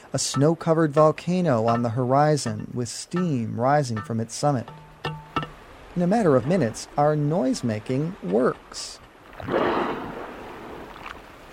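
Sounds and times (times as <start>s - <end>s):
speech: 0.1s - 4.8s, 6.0s - 10.0s
killer whales breathing at the surface: 9.3s - 11.4s.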